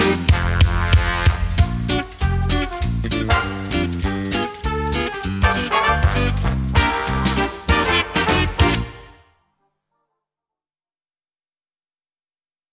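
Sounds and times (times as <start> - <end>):
instrumental music from cassette: 0.0 - 9.4.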